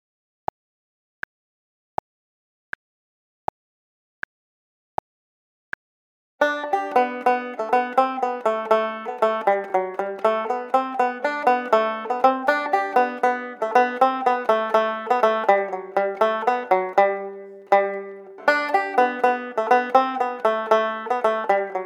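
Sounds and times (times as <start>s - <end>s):
jig tune: 6.4s - 21.8s.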